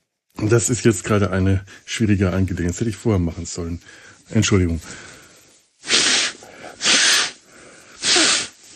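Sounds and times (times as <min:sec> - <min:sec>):
speech: 0:00.4 - 0:05.1
forceful nasal snorts clearing a broken nose: 0:05.8 - 0:07.4, 0:08.0 - 0:08.6.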